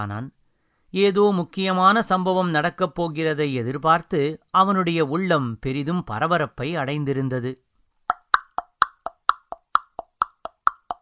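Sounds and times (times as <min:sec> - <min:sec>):
speech: 0:00.0 - 0:07.6
horse hoofbeats: 0:08.1 - 0:11.0.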